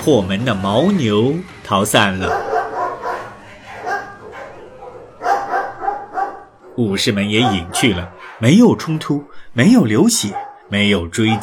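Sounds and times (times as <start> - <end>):
speech: 0.0 - 2.5, 6.8 - 11.4
several dogs barking: 2.0 - 11.4.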